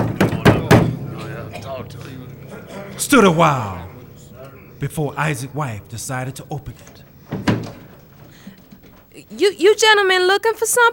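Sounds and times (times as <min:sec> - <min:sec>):
firm knocking on a mahogany house door: 0:00.0 - 0:01.1
laughter: 0:00.0 - 0:10.0
low steady noise: 0:00.0 - 0:10.9
speech: 0:03.0 - 0:03.8, 0:04.8 - 0:07.7, 0:09.3 - 0:10.9.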